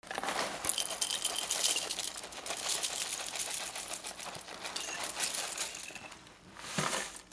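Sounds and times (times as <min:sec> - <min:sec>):
kitchen sounds: 0:00.2 - 0:06.2.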